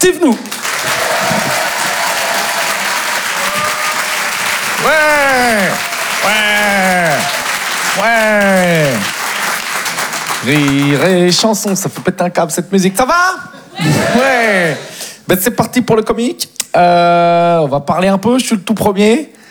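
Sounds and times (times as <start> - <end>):
speech: 0.0 - 1.6, 10.5 - 19.4
crowd applause: 0.4 - 11.4
loud cheers and whoops: 0.8 - 9.1.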